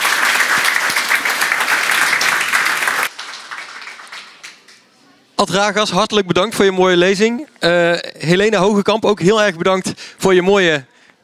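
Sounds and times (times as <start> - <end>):
audience applause: 0.0 - 4.9
speech: 5.4 - 10.9.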